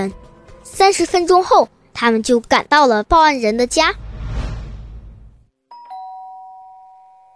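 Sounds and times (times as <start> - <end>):
speech: 0.0 - 4.0
doorbell ringing: 5.7 - 7.3.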